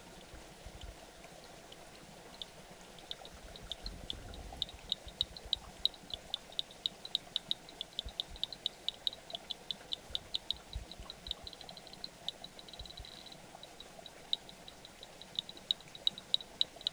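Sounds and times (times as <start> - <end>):
rain frog calling ticking notes: 2.3 - 16.9.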